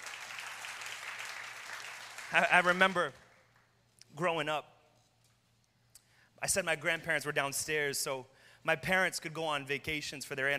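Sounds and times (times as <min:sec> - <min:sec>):
crowd applauding: 0:00.0 - 0:03.6
speech: 0:02.3 - 0:03.2, 0:04.2 - 0:04.7, 0:06.4 - 0:10.5.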